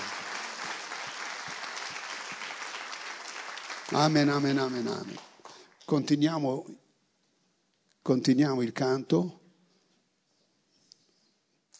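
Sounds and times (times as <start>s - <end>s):
audience applause: 0.0s - 5.7s
speech: 3.9s - 5.3s, 5.9s - 6.8s, 8.0s - 9.4s.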